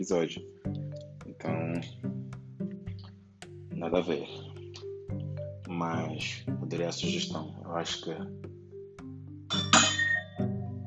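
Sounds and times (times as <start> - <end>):
speech: 0.0 - 0.8, 1.4 - 2.1, 3.8 - 4.5, 5.8 - 8.4
wine glasses clinking together: 9.5 - 10.4.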